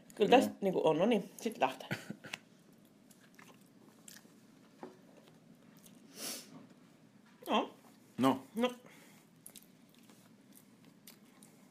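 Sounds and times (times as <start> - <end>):
speech: 0.2 - 2.2
someone biting and chewing crunchy food: 2.8 - 4.4, 9.4 - 11.7.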